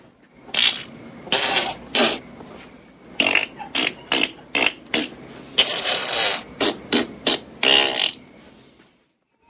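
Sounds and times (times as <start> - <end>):
person imitating farting with their mouth: 0.5 - 2.2, 3.2 - 8.2.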